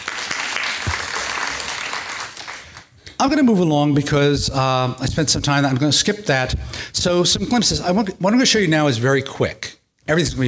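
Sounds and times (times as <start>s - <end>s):
audience applause: 0.0s - 2.9s
speech: 3.2s - 10.4s.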